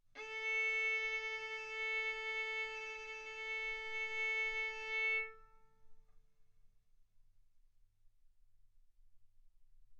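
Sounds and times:
violin bowed arco notes: 0:00.2 - 0:05.6.

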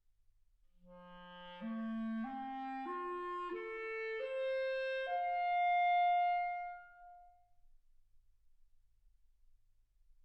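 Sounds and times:
clarinet: 0:00.9 - 0:07.4.

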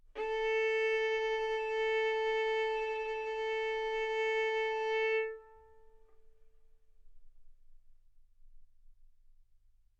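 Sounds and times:
violin bowed arco notes: 0:00.0 - 0:06.2.

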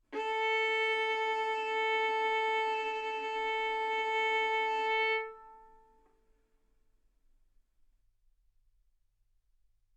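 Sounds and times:
violin bowed mezzo-forte on the A string, A4 and B4: 0:00.0 - 0:06.1.

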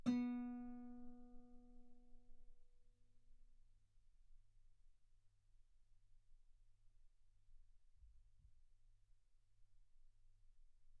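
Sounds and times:
guitar B3 note on B string played fortissimo: 0:00.0 - 0:01.6.

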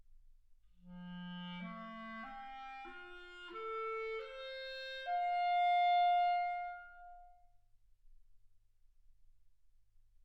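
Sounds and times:
clarinet: 0:00.8 - 0:07.4.

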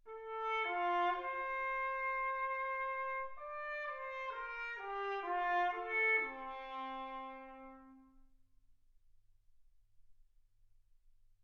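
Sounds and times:
trumpet: 0:00.0 - 0:08.3.

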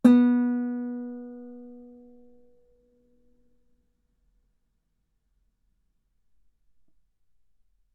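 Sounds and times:
guitar note B3: 0:00.0 - 0:02.2.

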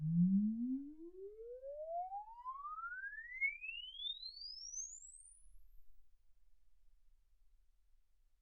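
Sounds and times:
exponential sine sweep from 10 Hz to 24 kHz: 0:00.2 - 0:05.9.

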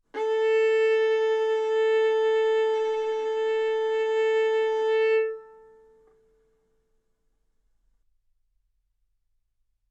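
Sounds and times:
violin bowed arco notes: 0:00.1 - 0:06.3.

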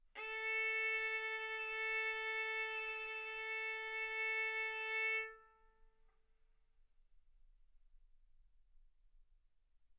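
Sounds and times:
violin arco on A string: 0:00.2 - 0:05.7.

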